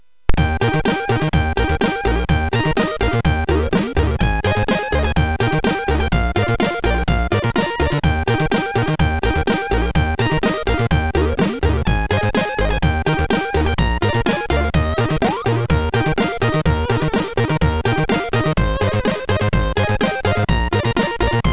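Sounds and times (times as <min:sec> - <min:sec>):
SID chiptune Christmas tune: 0:00.4 - 0:21.5.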